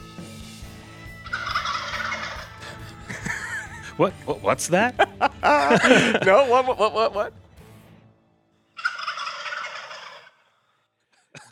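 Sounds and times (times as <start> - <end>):
birds recorded on a cell phone: 1.1 - 2.8, 8.8 - 10.5
laughter: 1.8 - 7.3, 11.2 - 11.5
speech: 4.0 - 7.4.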